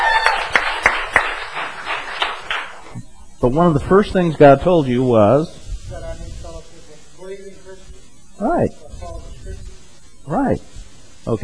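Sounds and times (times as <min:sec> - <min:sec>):
audience applause: 0:00.0 - 0:02.8
speech: 0:03.4 - 0:05.6, 0:08.4 - 0:08.7, 0:10.4 - 0:10.7.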